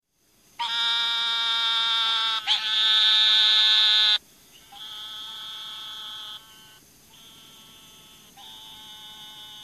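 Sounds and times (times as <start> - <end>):
Eastern narrowmouth toads in a chorus of overlapping bleating buzzes: 0.6 - 9.6.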